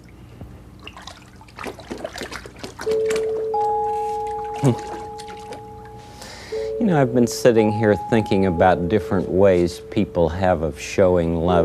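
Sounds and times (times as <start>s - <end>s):
water splashing as Fred Rogers soaks his feet in a tub: 0.0s - 5.8s
sustained tones: 2.9s - 11.5s
speech: 6.9s - 11.6s.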